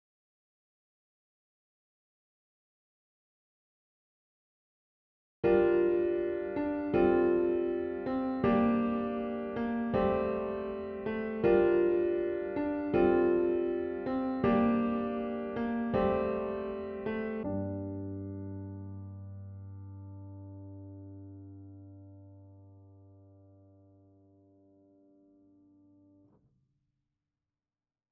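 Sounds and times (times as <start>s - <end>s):
piano: 5.4s - 26.3s.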